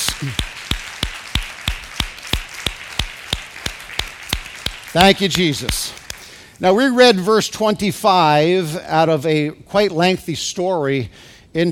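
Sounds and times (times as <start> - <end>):
audience clapping hands: 0.0 - 6.5
speech: 0.2 - 0.5, 4.9 - 6.0, 6.6 - 11.6.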